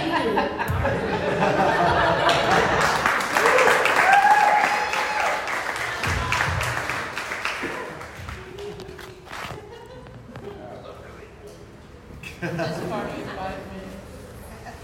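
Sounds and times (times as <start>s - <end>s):
laughter: 0.0s - 3.5s, 7.4s - 11.1s, 12.2s - 13.6s
audience cheering: 2.2s - 8.4s
applause: 2.3s - 9.0s.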